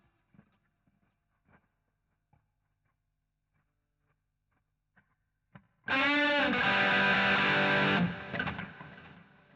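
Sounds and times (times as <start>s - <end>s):
guitar solo: 5.9s - 9.0s.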